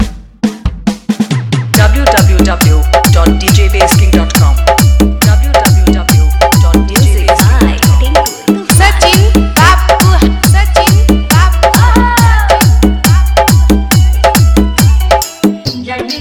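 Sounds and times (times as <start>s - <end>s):
Bhojpuri hard vibration mix: 0.0s - 15.9s.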